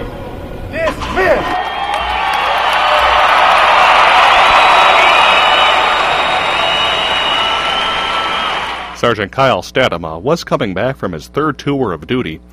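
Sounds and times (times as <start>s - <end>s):
crowd applause at homecoming: 1.5s - 9.0s
speech: 9.0s - 12.5s.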